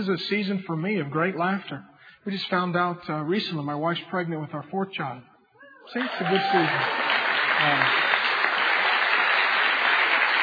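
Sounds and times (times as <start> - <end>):
speech: 0.0 - 8.0
audience applause: 5.9 - 10.4.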